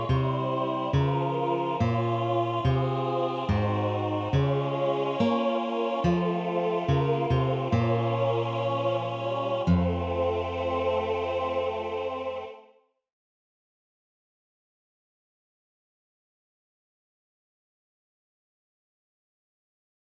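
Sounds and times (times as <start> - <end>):
choir bass voices singing a chorale: 0.0 - 12.8.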